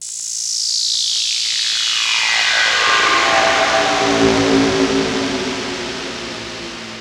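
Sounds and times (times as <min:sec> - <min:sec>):
synth production effect: 0:01.8 - 0:06.9.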